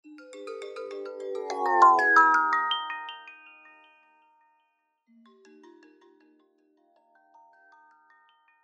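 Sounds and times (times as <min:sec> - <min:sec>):
Doppler-shifted iOS ringtones: 0:01.5 - 0:02.7.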